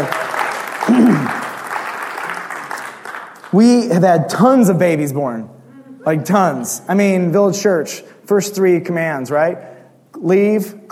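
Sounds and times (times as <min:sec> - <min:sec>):
audience applauding: 0:00.0 - 0:03.9
speech: 0:03.5 - 0:10.9.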